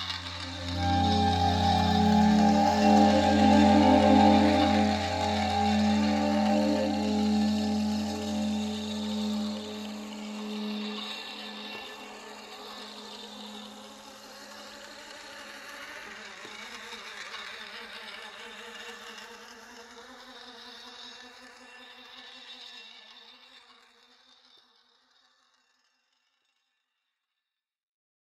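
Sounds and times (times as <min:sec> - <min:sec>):
abstract clarinet: 0:00.0 - 0:11.8.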